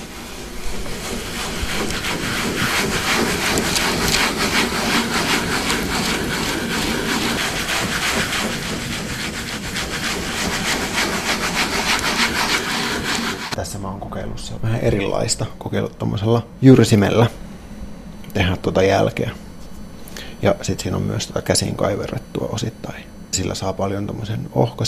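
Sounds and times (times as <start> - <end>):
burnisher rubbing paper over inked woodblock: 0.0 - 13.6
speech: 0.7 - 2.3, 14.8 - 17.4, 18.7 - 19.4, 20.4 - 24.8.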